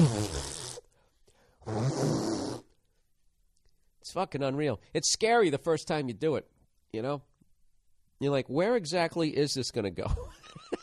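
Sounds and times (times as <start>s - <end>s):
person blowing nose without a tissue: 0.0s - 1.0s, 1.6s - 2.8s
speech: 4.1s - 7.3s, 8.2s - 10.7s.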